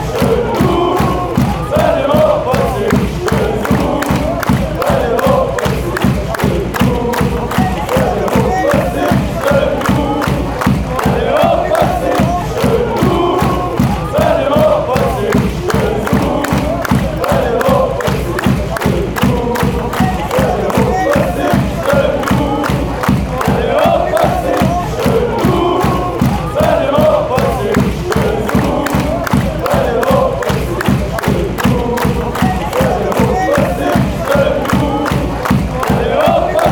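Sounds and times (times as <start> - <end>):
fans chanting: 0.0 - 36.6.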